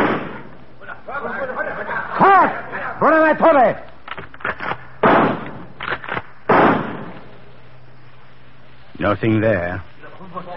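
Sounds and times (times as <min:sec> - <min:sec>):
rifle gunshots: 0:00.0 - 0:00.6, 0:04.4 - 0:07.3
speech: 0:02.4 - 0:03.9, 0:09.1 - 0:09.9.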